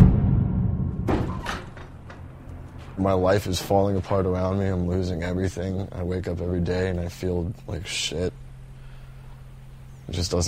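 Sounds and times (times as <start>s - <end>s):
punch landing on a man: 0.0s - 1.8s
sharp knocks: 0.0s - 2.9s
speech: 3.0s - 8.4s, 10.1s - 10.4s.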